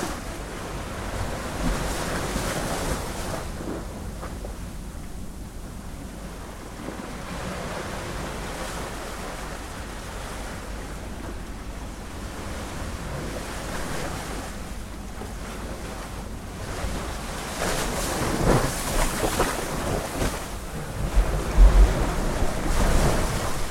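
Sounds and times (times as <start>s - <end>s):
sea: 0.0s - 23.6s.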